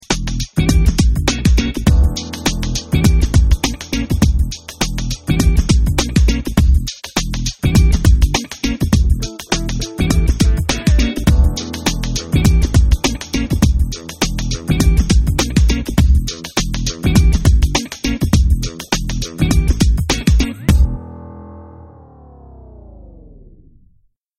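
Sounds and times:
lounge music: 0.0s - 23.5s.

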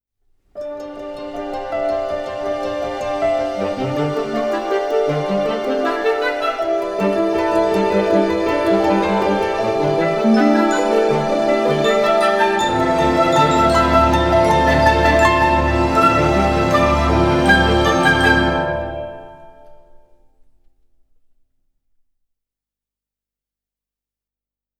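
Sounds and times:
shimmering orchestral ringtone: 1.0s - 20.1s.

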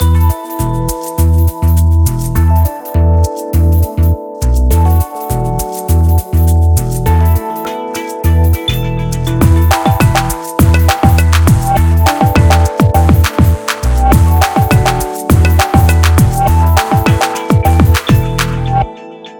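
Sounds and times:
optimistic music: 0.0s - 19.3s.

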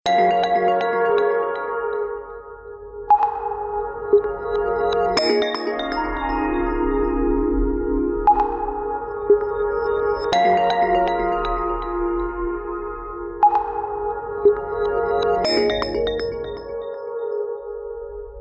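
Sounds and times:
peaceful ringtone: 0.1s - 2.3s, 3.1s - 7.3s, 8.3s - 12.5s, 13.4s - 17.4s.

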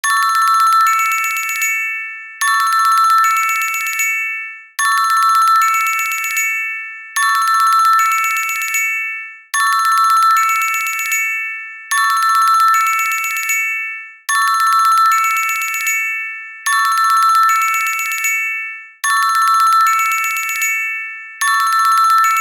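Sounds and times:
xylophone ringtone: 0.0s - 22.3s.

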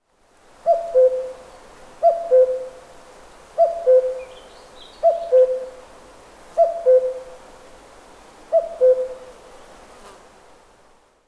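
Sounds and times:
cuckoo calling: 0.7s - 1.4s, 2.0s - 2.7s, 3.6s - 4.4s, 5.0s - 5.8s, 6.6s - 7.3s, 8.5s - 9.3s.

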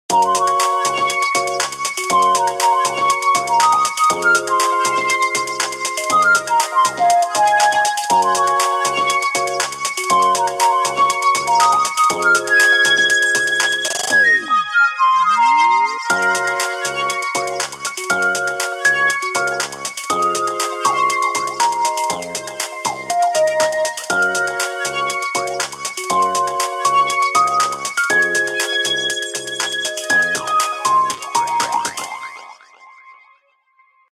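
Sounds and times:
flute ringtone: 0.1s - 33.1s.

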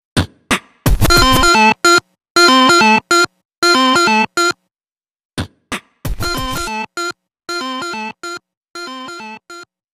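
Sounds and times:
Sony Ericsson W995 phone blips: 1.0s - 4.6s, 6.2s - 9.7s.

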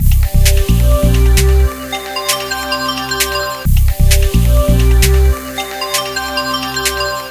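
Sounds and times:
weather change music: 0.0s - 7.2s.

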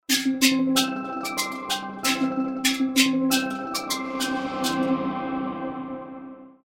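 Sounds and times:
festive ringtone: 0.1s - 6.2s.

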